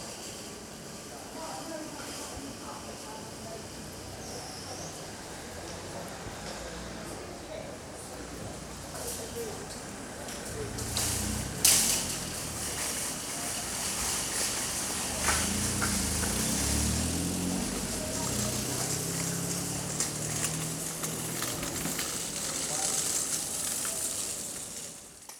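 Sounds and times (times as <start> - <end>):
people chattering outside a busy supermarket: 1.1 - 24.8
cars outside a busy supermarket: 3.3 - 25.3
shopping trolleys rolling outside a busy supermarket: 8.9 - 25.3.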